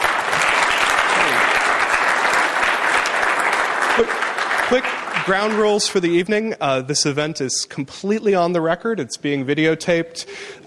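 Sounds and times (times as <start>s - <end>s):
audience applauding: 0.0s - 6.2s
speech: 4.0s - 10.6s.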